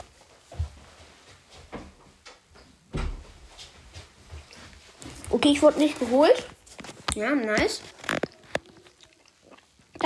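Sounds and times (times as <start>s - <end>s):
door being closed: 2.9s - 3.3s
speech: 5.3s - 6.6s, 7.2s - 8.0s.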